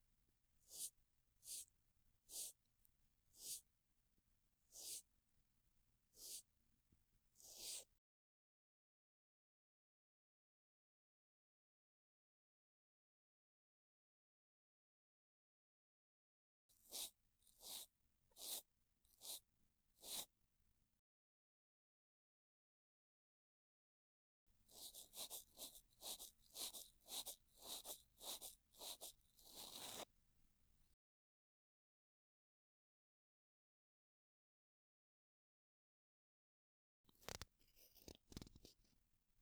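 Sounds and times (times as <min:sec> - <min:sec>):
cotton swab brushing ear rim and earlobe on left side: 0:00.7 - 0:01.7, 0:02.3 - 0:02.6, 0:03.4 - 0:03.6, 0:04.8 - 0:05.0, 0:06.2 - 0:06.4, 0:07.4 - 0:07.8, 0:16.8 - 0:19.4, 0:20.0 - 0:20.3, 0:24.7 - 0:30.1.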